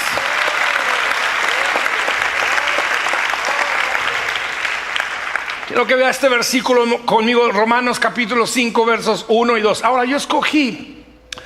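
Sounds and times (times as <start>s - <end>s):
audience applauding: 0.0s - 6.4s
speech: 5.8s - 11.0s.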